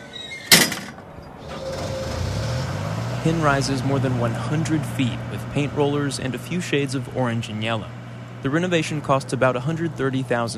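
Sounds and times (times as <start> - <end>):
heavy steel door of construction lift slamming shut: 0.0 - 2.0
speech: 3.2 - 10.5.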